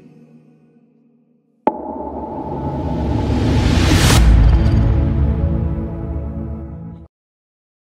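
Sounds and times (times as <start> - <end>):
Telugu song: 1.7 - 7.0.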